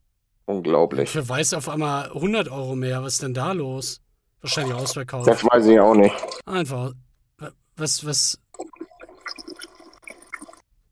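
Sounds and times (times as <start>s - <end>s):
speech: 0.5s - 8.7s
man urinating: 4.6s - 6.5s, 8.4s - 10.7s.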